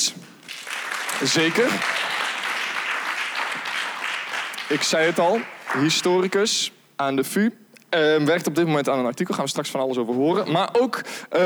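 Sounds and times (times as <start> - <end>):
audience applause: 0.0 - 6.4
speech: 1.2 - 2.0, 4.7 - 11.4.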